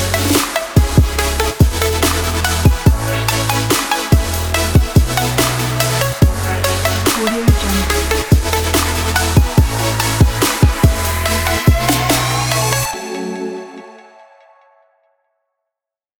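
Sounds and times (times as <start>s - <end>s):
future bass kit: 0.0s - 13.0s.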